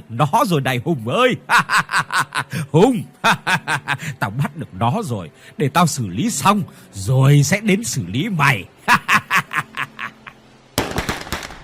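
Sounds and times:
speech: 0:00.1 - 0:09.4
laughter: 0:01.5 - 0:05.0, 0:08.8 - 0:10.4
gunshot: 0:10.8 - 0:11.6.

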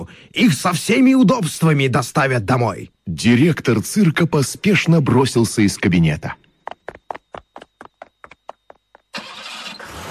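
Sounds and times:
speech: 0:00.0 - 0:06.4
car engine starting with starter cranking: 0:09.1 - 0:10.1.

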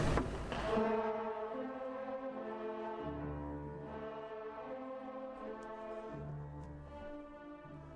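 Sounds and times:
orchestra playing a slow instrumental passage: 0:00.5 - 0:07.9.

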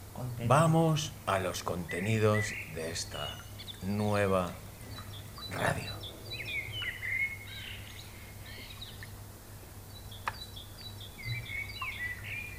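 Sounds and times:
low hum: 0:00.0 - 0:10.1
birds chirping: 0:00.0 - 0:12.5
speech: 0:00.3 - 0:04.6, 0:05.5 - 0:06.0.

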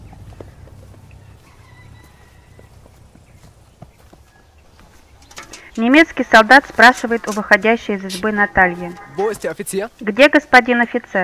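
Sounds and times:
horse hooves clip-clopping while led: 0:00.0 - 0:10.4
speech: 0:05.8 - 0:11.2.

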